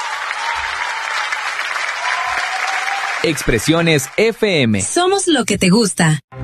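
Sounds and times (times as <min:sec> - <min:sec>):
audience applause: 0:00.0 - 0:04.6
speech: 0:03.2 - 0:06.3.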